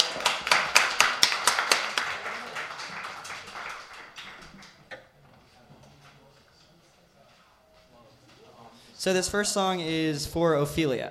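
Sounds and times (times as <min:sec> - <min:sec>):
small audience clapping: 0:00.0 - 0:04.9
speech: 0:09.0 - 0:11.1.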